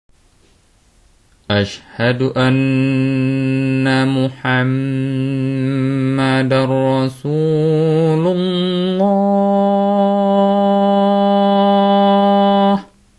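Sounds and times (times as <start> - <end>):
adzan call to prayer: 1.5 - 12.9.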